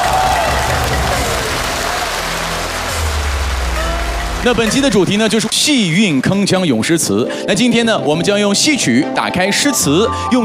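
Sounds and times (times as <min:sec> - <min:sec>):
audience applause: 0:00.0 - 0:07.0
speech: 0:04.4 - 0:10.4.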